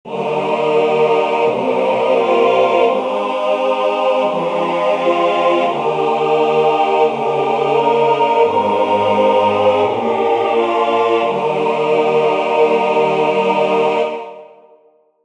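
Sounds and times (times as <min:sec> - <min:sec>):
choir singing amen: 0:00.1 - 0:14.7.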